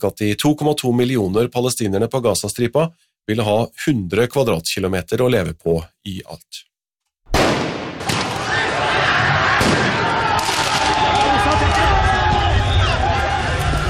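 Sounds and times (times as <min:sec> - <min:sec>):
speech: 0:00.0 - 0:06.7
explosive bangs: 0:07.3 - 0:08.7, 0:09.5 - 0:11.8
crowd roaring and shouting in football riots in France after Paris Saint-Germain won: 0:08.0 - 0:13.8.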